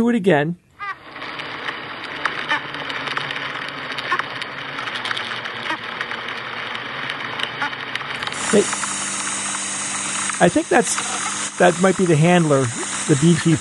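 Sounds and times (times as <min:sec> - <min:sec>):
speech: 0:00.0 - 0:00.6, 0:08.5 - 0:08.8, 0:10.4 - 0:13.5
bees bumping into each other, buzzing: 0:00.8 - 0:13.5.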